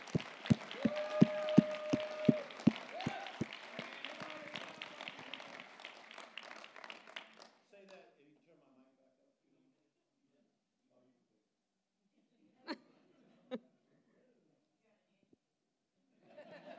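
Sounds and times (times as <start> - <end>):
audience clapping: 0.0 - 8.0
laughter: 16.2 - 16.7.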